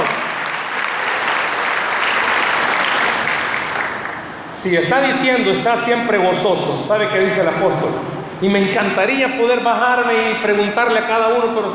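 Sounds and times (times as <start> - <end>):
audience applause: 0.0 - 4.4
speech: 4.5 - 11.7.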